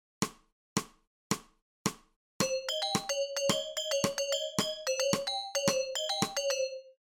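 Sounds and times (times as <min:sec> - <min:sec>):
musical scale: 0:02.4 - 0:07.0.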